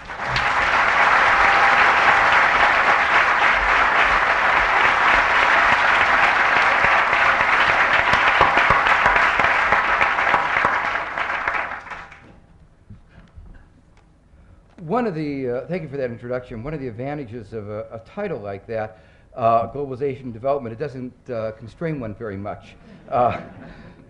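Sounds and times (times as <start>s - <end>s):
audience applause welcoming a lecturer at the LSE: 0.0s - 12.2s
speech: 15.1s - 23.8s.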